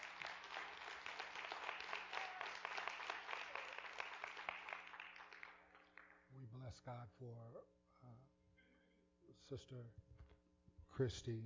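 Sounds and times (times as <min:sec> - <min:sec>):
audience hand clap of praise: 0:00.0 - 0:06.3
speech: 0:06.6 - 0:08.4, 0:09.3 - 0:10.2, 0:11.0 - 0:11.4.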